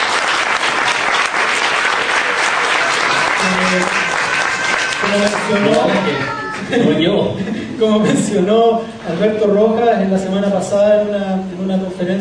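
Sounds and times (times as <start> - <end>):
audience applause: 0.0 - 6.7
speech: 3.4 - 4.0, 5.1 - 12.1.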